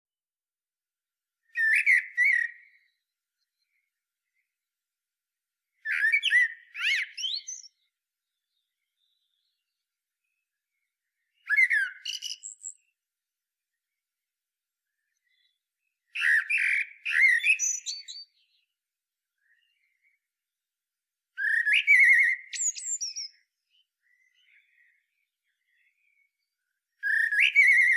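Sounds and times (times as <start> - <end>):
common blackbird singing: 1.5 - 3.8, 5.8 - 9.8, 11.2 - 12.9, 15.1 - 18.7, 21.4 - 27.9.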